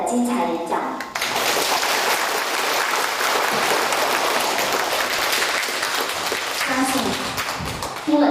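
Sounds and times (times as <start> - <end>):
speech: 0.1 - 1.0
warm audience applause: 1.2 - 8.1.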